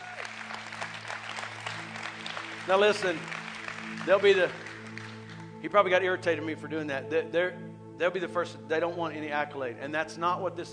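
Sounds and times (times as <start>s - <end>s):
audience applauding: 0.0s - 5.5s
speech: 2.7s - 4.6s, 5.6s - 10.7s.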